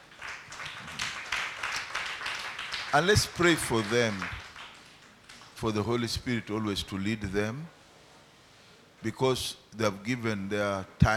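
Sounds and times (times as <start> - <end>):
church congregation clapping for the choir: 0.0 - 6.2
speech: 2.9 - 4.4, 5.6 - 7.8, 9.0 - 11.1.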